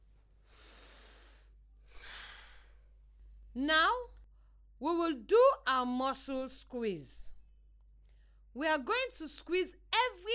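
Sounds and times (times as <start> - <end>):
deep inhale through the nose: 0.5 - 2.9
exhale through the mouth: 0.5 - 2.9
speech: 3.6 - 4.1, 4.8 - 7.3, 8.5 - 10.3.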